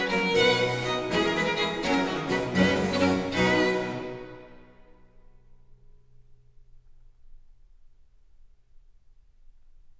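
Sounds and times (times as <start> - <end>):
viol suite in C minor: 0.0 - 4.9.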